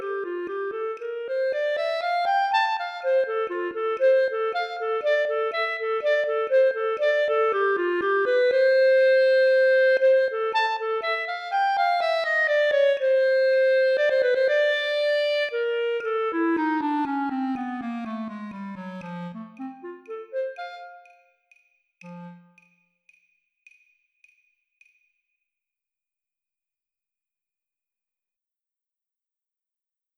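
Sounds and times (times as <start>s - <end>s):
B-flat clarinet play-along: 0.0s - 21.3s, 22.0s - 22.6s.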